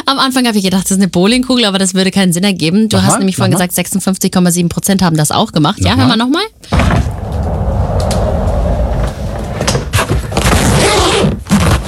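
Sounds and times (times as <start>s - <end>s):
speech: 0.1s - 7.7s
rolling suitcase rolled along: 6.9s - 10.6s.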